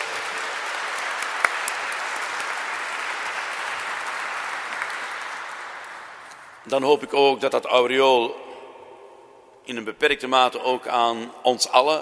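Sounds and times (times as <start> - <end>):
audience applause: 0.0 - 6.7
speech: 6.6 - 8.4, 9.7 - 12.0.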